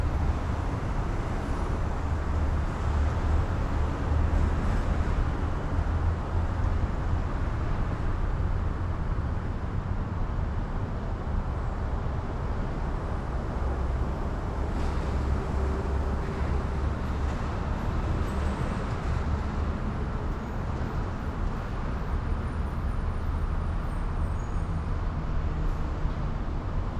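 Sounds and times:
train: 0:00.0 - 0:26.9.

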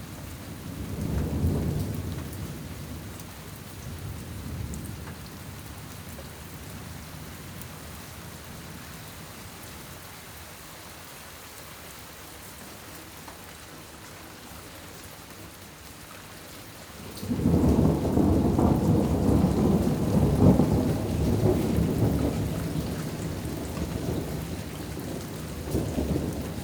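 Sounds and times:
thunderstorm: 0:00.0 - 0:08.9, 0:17.0 - 0:26.6.

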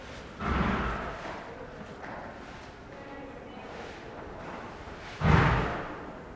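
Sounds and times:
farm animal snorts: 0:00.2 - 0:01.5, 0:05.0 - 0:06.2
farm animal grunts: 0:00.4 - 0:01.4.

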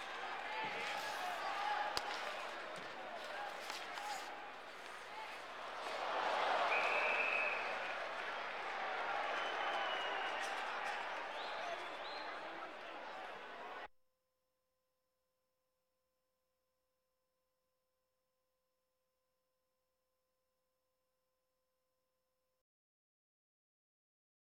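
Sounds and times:
sports crowd: 0:00.0 - 0:13.9.

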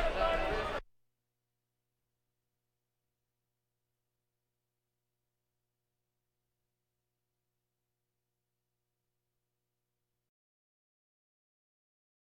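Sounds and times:
crowds: 0:00.0 - 0:00.8.

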